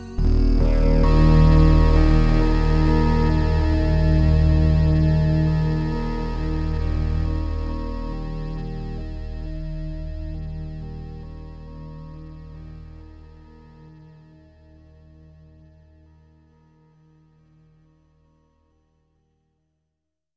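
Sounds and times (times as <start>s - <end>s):
PPG Wave synthesizer long notes: 0.0s - 14.4s.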